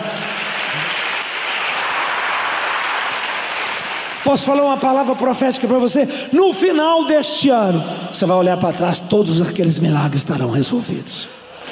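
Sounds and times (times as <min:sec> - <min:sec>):
applause: 0:00.0 - 0:04.9
speech: 0:04.2 - 0:11.4.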